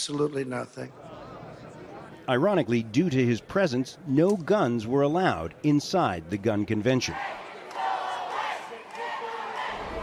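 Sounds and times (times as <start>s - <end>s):
speech: 0.0s - 1.1s, 2.3s - 7.4s
protest crowd shouting and chanting outside the NRA gun convention: 7.0s - 10.0s.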